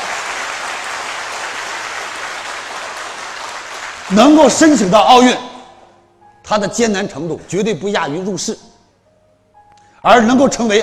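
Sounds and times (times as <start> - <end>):
applause: 0.0 - 4.5
speech: 4.1 - 5.5, 6.5 - 8.7, 10.0 - 10.8.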